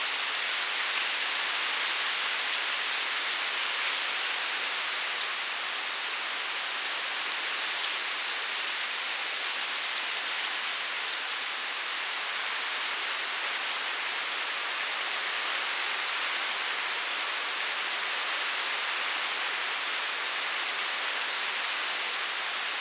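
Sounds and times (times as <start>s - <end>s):
rain: 0.0s - 22.7s.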